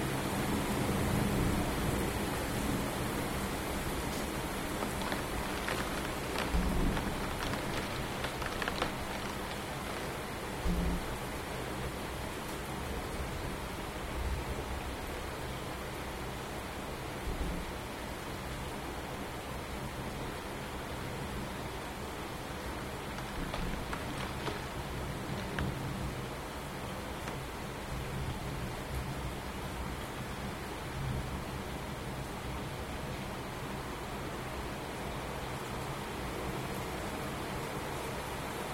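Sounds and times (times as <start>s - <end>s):
rain at home: 0.0s - 38.7s
rumbling at home: 4.3s - 11.2s, 23.0s - 26.2s.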